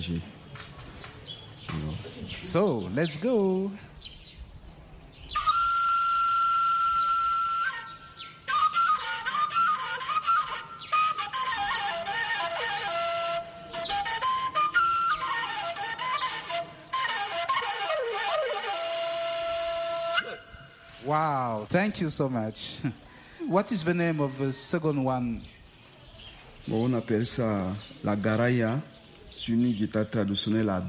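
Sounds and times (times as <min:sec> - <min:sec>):
speech: 0:00.0 - 0:00.7, 0:01.8 - 0:04.1, 0:21.7 - 0:25.6, 0:26.6 - 0:30.8
wombere four-hole pentatonic shepherd's flute melody: 0:05.3 - 0:21.1.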